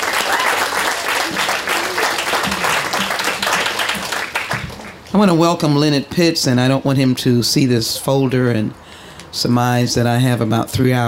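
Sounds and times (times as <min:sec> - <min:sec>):
audience clapping welcoming a guest at a chapel gathering: 0:00.0 - 0:05.1
speech: 0:05.1 - 0:11.0.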